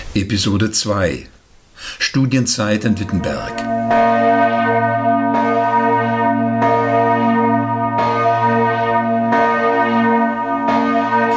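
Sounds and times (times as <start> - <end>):
speech: 0.1 - 4.5
church bells ringing: 2.6 - 11.3.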